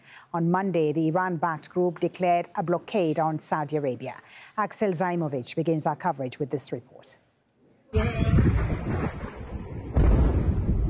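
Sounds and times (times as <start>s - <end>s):
speech: 0.3s - 7.2s
multiple explosions from airstrikes in Chabahar: 8.0s - 10.8s.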